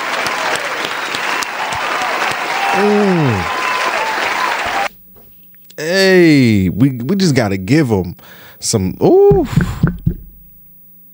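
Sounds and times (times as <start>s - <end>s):
crowd applause as a hand clap of praise: 0.0s - 4.9s
person calling out over clapping: 2.8s - 3.5s, 9.0s - 9.9s
speech: 2.8s - 3.5s, 6.3s - 10.1s.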